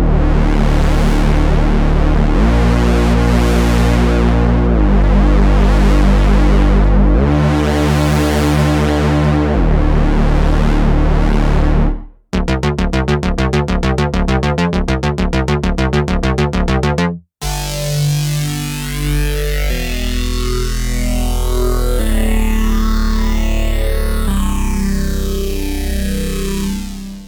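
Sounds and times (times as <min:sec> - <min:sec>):
synth expander modulated basses: 0:00.0 - 0:27.2.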